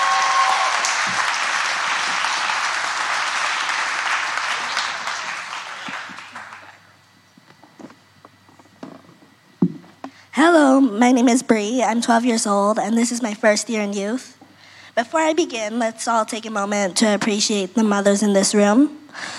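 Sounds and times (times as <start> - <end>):
audience applause for a speaker: 0.0 - 6.9
speech: 10.4 - 14.4, 15.0 - 19.3.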